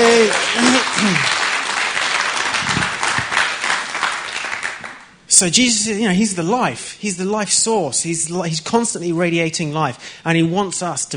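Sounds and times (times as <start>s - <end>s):
round of applause: 0.0s - 5.1s
speech: 5.4s - 11.1s.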